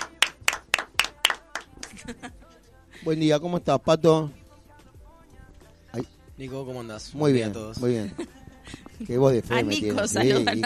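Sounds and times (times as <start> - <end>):
applause: 0.0 - 2.1
laughter: 1.8 - 2.5, 7.8 - 10.6
speech: 2.1 - 2.4, 3.0 - 4.4, 6.0 - 10.6.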